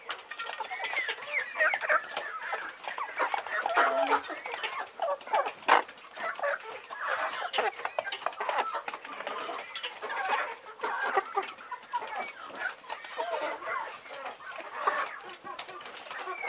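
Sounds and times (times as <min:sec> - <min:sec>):
birds calling in dense chatter: 0:00.4 - 0:16.4.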